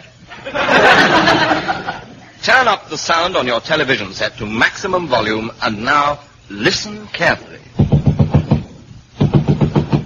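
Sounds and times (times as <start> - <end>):
laughter: 0.3 - 2.4
speech: 2.6 - 7.8
knocking on a wall: 7.8 - 10.0.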